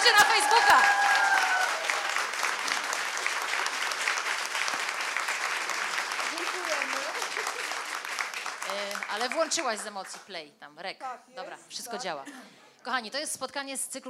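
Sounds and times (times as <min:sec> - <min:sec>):
audience applause: 0:00.0 - 0:10.3
speech: 0:09.3 - 0:14.0.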